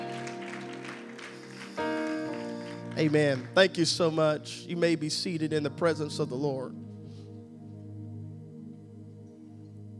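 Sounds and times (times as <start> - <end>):
audience clapping: 0.0 - 4.2
sustained organ chords: 0.0 - 9.9
speech: 3.0 - 6.9.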